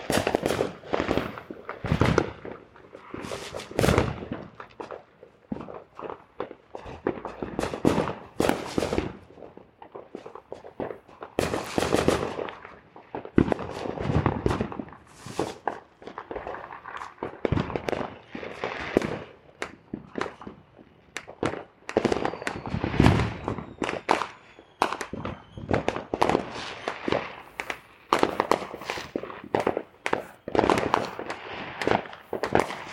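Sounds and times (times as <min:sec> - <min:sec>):
firecrackers popping in a backyard: 0:00.0 - 0:32.9
soft shuffling: 0:27.5 - 0:31.3.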